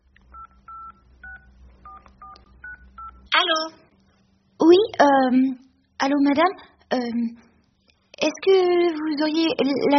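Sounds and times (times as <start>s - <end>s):
low hum: 0.0s - 9.9s
telephone keypad tones while dialing: 0.3s - 3.3s
speech: 4.7s - 7.5s, 8.2s - 9.9s.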